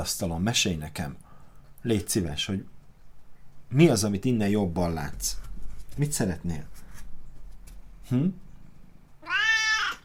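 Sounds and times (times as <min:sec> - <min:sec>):
speech: 0:00.0 - 0:01.2, 0:01.8 - 0:02.7, 0:03.7 - 0:05.4, 0:06.0 - 0:06.8, 0:08.1 - 0:08.4
cat meowing: 0:09.2 - 0:10.0.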